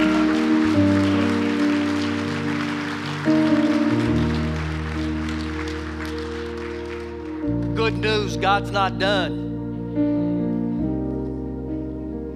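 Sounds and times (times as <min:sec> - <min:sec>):
audience clapping: 0:00.0 - 0:09.2
sustained keyboard chords: 0:00.0 - 0:12.3
speech: 0:07.9 - 0:09.4.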